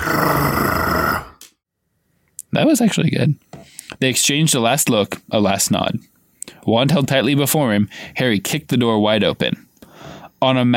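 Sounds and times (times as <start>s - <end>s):
voice imitating deep loud cat purring: 0.0s - 1.4s
speech: 2.5s - 9.6s, 10.4s - 10.7s.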